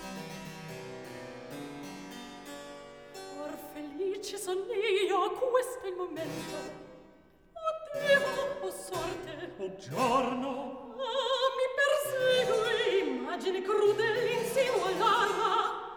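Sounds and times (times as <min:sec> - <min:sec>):
recitative singing: 0:03.4 - 0:15.9.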